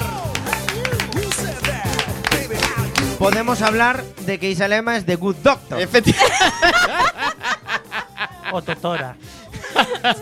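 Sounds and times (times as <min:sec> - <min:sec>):
applause: 0:00.0 - 0:03.0
speech: 0:03.2 - 0:07.0, 0:08.5 - 0:10.1
laughter: 0:05.9 - 0:10.1.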